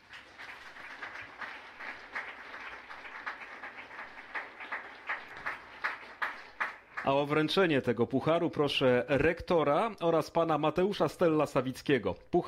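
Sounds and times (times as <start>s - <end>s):
audience applause: 0.0s - 7.3s
speech: 7.1s - 12.4s.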